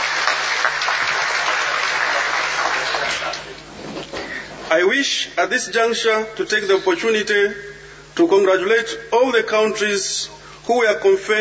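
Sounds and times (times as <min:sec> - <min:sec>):
audience clapping: 0:00.0 - 0:03.6
speech: 0:04.7 - 0:11.3.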